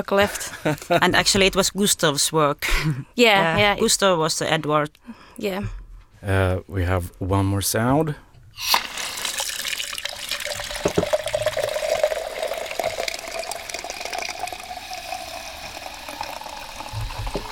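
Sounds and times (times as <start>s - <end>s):
speech: 0.0s - 8.9s
beer being poured: 8.6s - 17.5s.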